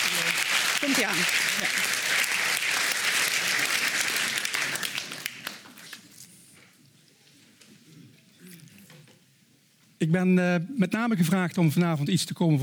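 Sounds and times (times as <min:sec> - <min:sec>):
audience applause: 0:00.0 - 0:05.8
speech: 0:00.8 - 0:02.3, 0:10.0 - 0:12.6.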